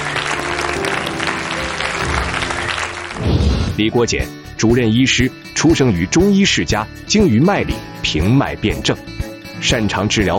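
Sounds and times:
audience applause: 0.0 - 3.7
speech: 3.8 - 10.3.

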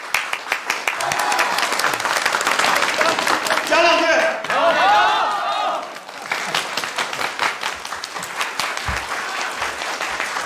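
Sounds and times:
audience applause at a reunion welcoming a village Party secretary: 0.0 - 10.4.

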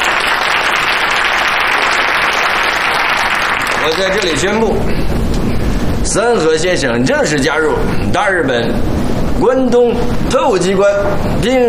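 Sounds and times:
audience applause: 0.0 - 4.4
speech: 3.8 - 5.2, 6.0 - 11.6.

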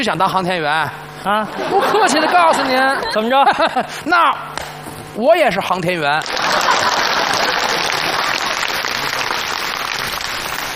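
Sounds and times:
speech: 0.0 - 4.6, 5.2 - 6.4
laughter: 1.3 - 4.1, 6.2 - 9.5
audience applause: 6.2 - 10.7.

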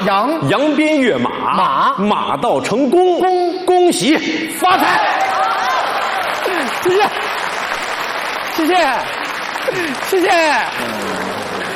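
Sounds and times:
speech: 0.0 - 5.3, 6.6 - 7.3, 8.6 - 11.4
audience applause: 4.8 - 11.7.

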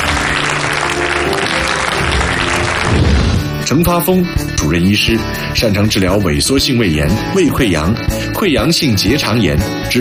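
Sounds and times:
audience applause welcoming guest: 0.0 - 3.6
speech: 3.7 - 9.9.

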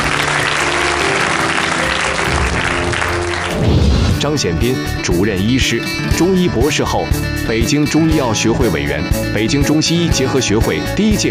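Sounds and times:
studio audience applause: 0.0 - 4.2
speech: 4.3 - 11.2.

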